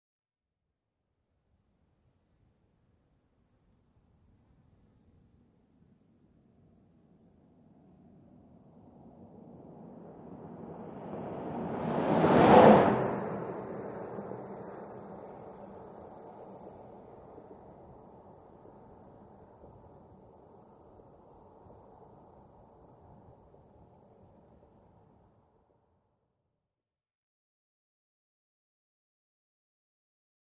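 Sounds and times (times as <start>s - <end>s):
SUV passing by at 55 mph: 9.5s - 19.2s.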